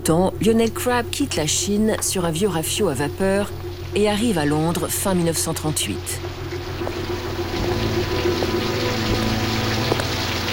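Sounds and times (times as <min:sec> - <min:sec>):
speech: 0:00.0 - 0:06.4
low rumbling hum: 0:00.0 - 0:10.5
heavy rain pouring: 0:06.2 - 0:10.5.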